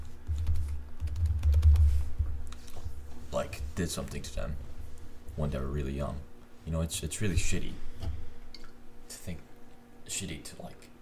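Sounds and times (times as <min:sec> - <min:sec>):
typing on a computer keyboard: 0:00.2 - 0:02.0
speech: 0:03.8 - 0:04.7, 0:05.4 - 0:08.2, 0:09.2 - 0:09.5, 0:10.1 - 0:10.9.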